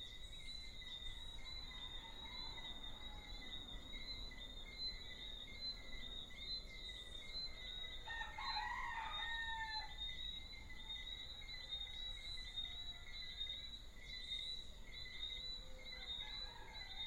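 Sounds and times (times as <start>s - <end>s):
small frogs whistling chorus: 0.0s - 17.0s
rooster crowing: 1.5s - 3.8s, 8.0s - 10.0s, 15.9s - 17.0s.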